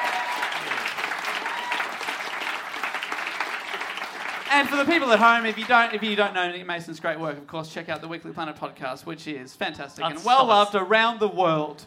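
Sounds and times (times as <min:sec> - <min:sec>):
live audience applause: 0:00.0 - 0:06.4
speech: 0:04.5 - 0:11.8.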